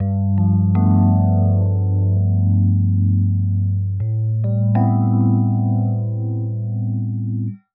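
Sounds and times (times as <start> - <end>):
Rhodes electric piano chords in G in nu jazz house style at 120 bpm: 0.0 - 7.6.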